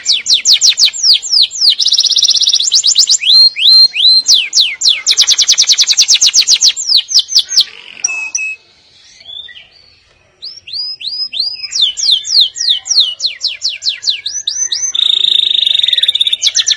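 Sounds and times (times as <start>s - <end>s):
canary trilling song: 0.0s - 16.7s.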